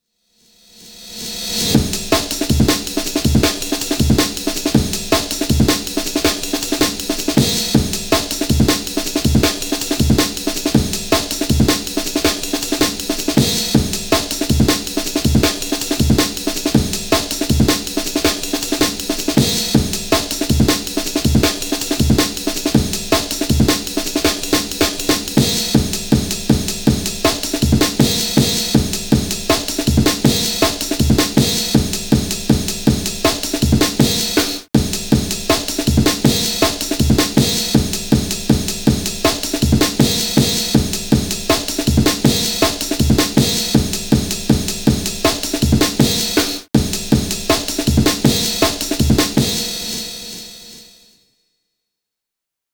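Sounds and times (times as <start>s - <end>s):
drum breaks: 1.2s - 50.8s.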